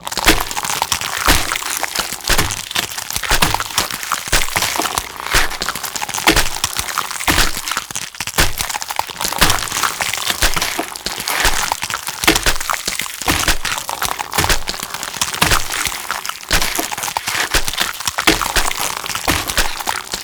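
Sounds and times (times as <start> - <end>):
gore sound effect: 0.1 - 7.8, 9.3 - 20.2.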